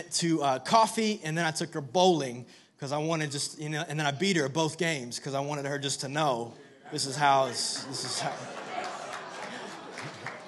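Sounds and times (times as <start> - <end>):
speech: 0.0 - 8.6
laughter: 6.6 - 10.4
audience clapping: 7.4 - 10.4.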